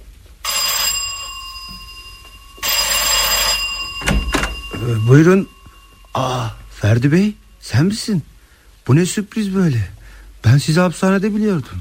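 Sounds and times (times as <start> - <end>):
electric doorbell ringing: 0.4 - 7.4
speech: 4.9 - 8.3, 8.9 - 11.7.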